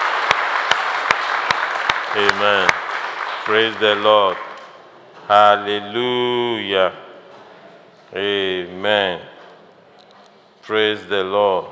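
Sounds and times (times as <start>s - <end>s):
audience clapping loudly: 0.0s - 4.8s
speech: 2.1s - 2.8s, 3.4s - 4.4s, 5.3s - 7.0s, 8.1s - 9.3s, 10.7s - 11.7s.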